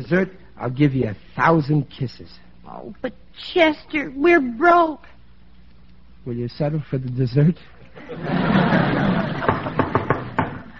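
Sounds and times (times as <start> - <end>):
speech: 0.0 - 5.1, 6.2 - 9.0
hiss: 0.0 - 10.7
laughter: 8.0 - 10.7
knocking on a door: 9.5 - 10.7.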